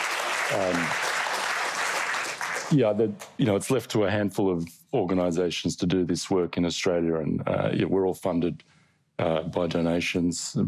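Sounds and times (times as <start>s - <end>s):
audience applause at a gathering supporting a donation-funded organisation: 0.0s - 2.8s
speech: 0.5s - 1.1s, 2.7s - 10.6s.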